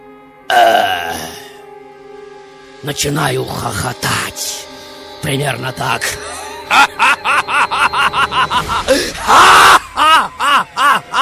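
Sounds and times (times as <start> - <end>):
loud burp: 0.5 - 1.5
speech: 2.8 - 4.6, 5.3 - 11.2
laughter: 6.5 - 11.2.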